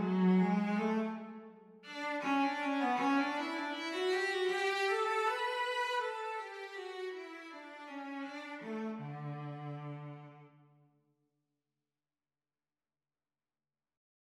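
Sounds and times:
romantic cello duet at exam speed: 0:00.0 - 0:10.6.

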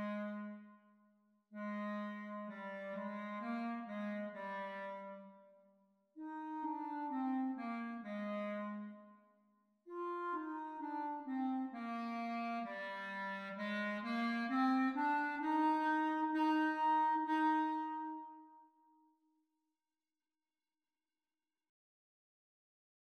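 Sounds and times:
clarinet duet: 0:00.0 - 0:00.7, 0:01.6 - 0:05.5, 0:06.2 - 0:09.0, 0:09.9 - 0:18.7.

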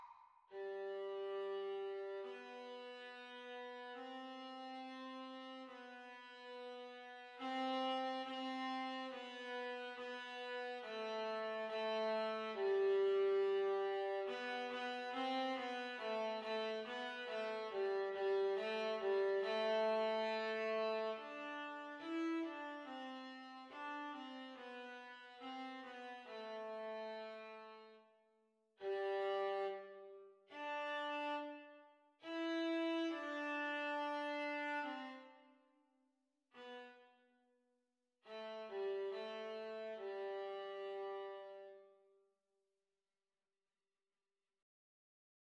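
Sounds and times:
viola duet at practice speed: 0:00.5 - 0:28.0, 0:28.8 - 0:35.6, 0:38.3 - 0:41.9.

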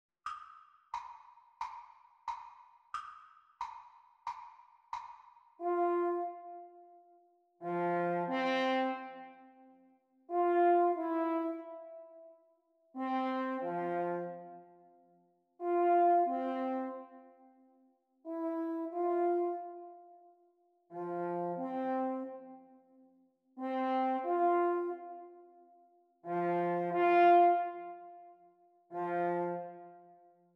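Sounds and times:
French horn duets: 0:05.6 - 0:06.7, 0:07.6 - 0:09.3, 0:10.3 - 0:12.2, 0:13.0 - 0:14.6, 0:15.6 - 0:17.1, 0:18.3 - 0:20.0, 0:20.9 - 0:22.6, 0:23.6 - 0:25.4, 0:26.2 - 0:28.2, 0:28.9 - 0:30.2.

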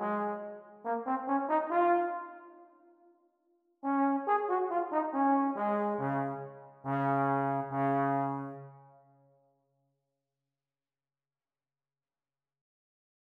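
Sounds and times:
E-flat horn playalong music for practice: 0:00.0 - 0:02.7, 0:03.8 - 0:08.8.

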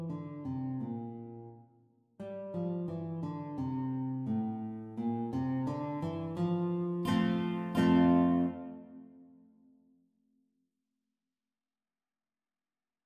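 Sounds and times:
guitar duet playalong at exam speed: 0:00.0 - 0:01.6, 0:02.2 - 0:09.3.

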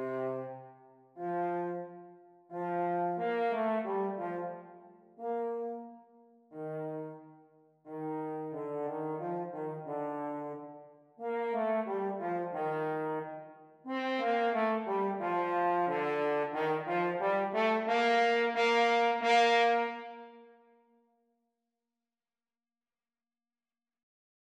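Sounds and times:
French horn duet playalong: 0:00.0 - 0:05.9, 0:06.5 - 0:07.3, 0:07.9 - 0:20.4.

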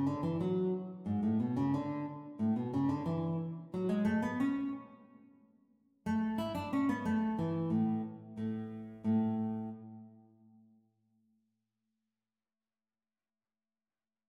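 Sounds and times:
guitar duet at exam speed: 0:00.0 - 0:05.3, 0:06.1 - 0:10.3.

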